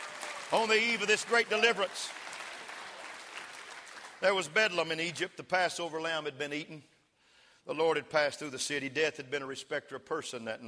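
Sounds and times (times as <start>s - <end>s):
audience clapping: 0.0s - 4.9s
speech: 0.5s - 2.2s, 4.2s - 6.9s, 7.6s - 10.6s.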